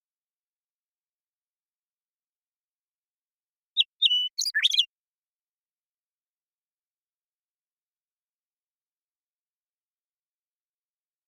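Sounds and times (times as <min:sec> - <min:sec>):
Western meadowlark song phrase: 0:03.8 - 0:04.9.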